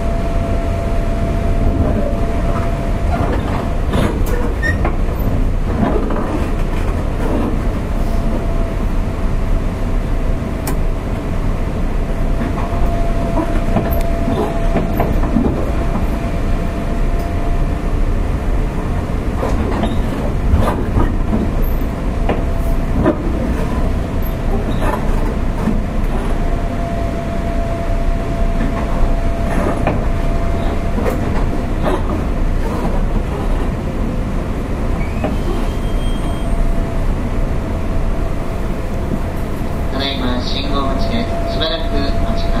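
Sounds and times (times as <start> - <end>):
faint whining tone: 0.0 - 5.2, 10.8 - 20.2, 21.0 - 33.0, 35.0 - 42.5
JR 201 series electric train rumble: 0.0 - 42.5
brief squeals: 35.0 - 36.8.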